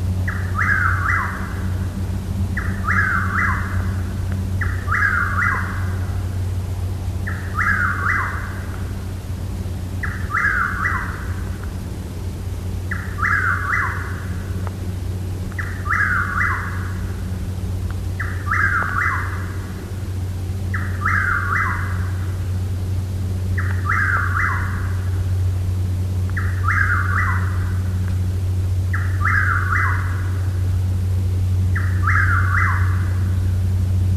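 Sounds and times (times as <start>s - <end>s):
low droning hum: 0.0s - 34.1s
Chuck-will's-widow singing its whistled three-note phrase: 0.3s - 1.4s, 2.6s - 3.9s, 4.6s - 5.9s, 7.2s - 8.6s, 10.0s - 11.2s, 12.9s - 14.2s, 15.6s - 16.9s, 18.2s - 19.4s, 20.7s - 22.0s, 23.6s - 24.8s, 26.4s - 27.6s, 28.9s - 30.2s, 31.7s - 33.0s.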